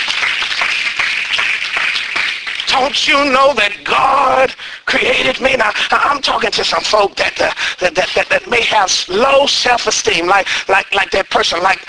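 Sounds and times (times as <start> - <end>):
church congregation clapping in praise: 0.0 - 4.5
speech: 2.8 - 11.8.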